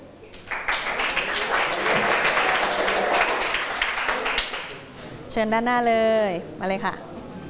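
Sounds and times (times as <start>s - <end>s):
classroom applause: 0.3s - 5.0s
speech: 5.3s - 7.1s.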